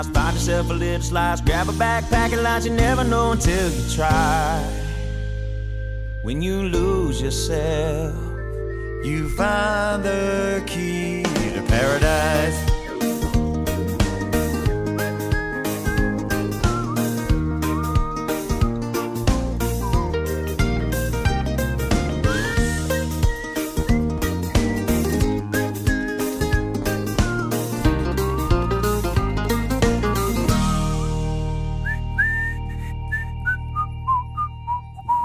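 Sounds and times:
speech: 0.0 - 4.8, 6.2 - 8.3, 9.0 - 12.7
upbeat song with steady rhythmic backing: 0.0 - 35.2
whistled melody in an upbeat song: 0.0 - 35.2.

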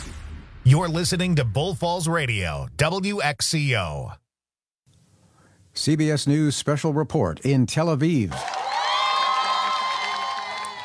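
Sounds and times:
speech: 0.7 - 4.2, 5.8 - 8.6
crowd cheering at hostage release: 8.3 - 10.8.

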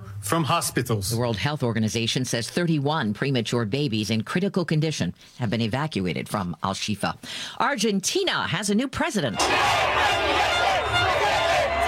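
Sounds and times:
speech: 0.2 - 10.6
crowd cheering in the streets of Buenos Aires for Javier Milei: 9.3 - 11.8.

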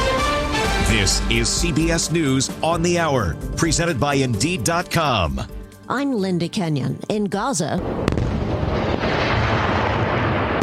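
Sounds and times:
speech: 0.9 - 8.3
explosions from renewed fighting between Israel and Hamas in Gaza: 7.8 - 10.6.

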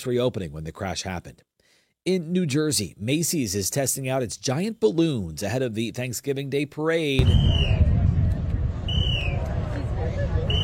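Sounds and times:
speech: 0.0 - 8.0
whistles directing balloon crews: 7.2 - 7.9, 8.8 - 9.5, 10.4 - 10.6.

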